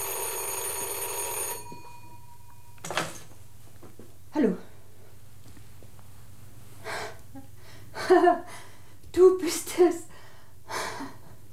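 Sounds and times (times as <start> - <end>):
old telephone bell ringing: 0.0 - 3.2
speech: 4.4 - 4.7, 9.4 - 10.0.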